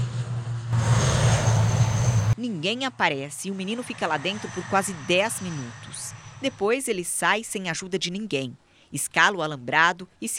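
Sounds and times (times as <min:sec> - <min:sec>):
airplane taking off on an airport runway: 0:00.0 - 0:02.4, 0:03.0 - 0:07.1
speech: 0:02.5 - 0:10.3.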